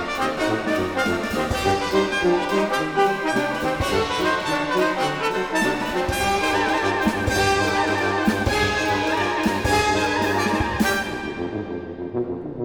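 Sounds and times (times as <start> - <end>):
keyboard prelude and fugue: 0.0 - 12.6.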